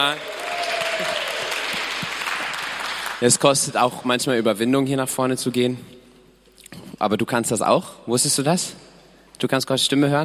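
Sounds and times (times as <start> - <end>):
speech: 0.0 - 0.4, 3.2 - 6.0, 7.0 - 10.2
audience applause: 0.0 - 3.7.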